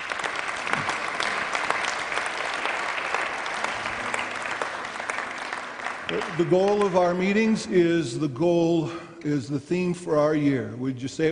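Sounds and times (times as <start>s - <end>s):
audience applause at a Christian meeting welcoming a speaker: 0.0s - 7.8s
speech: 6.4s - 11.3s.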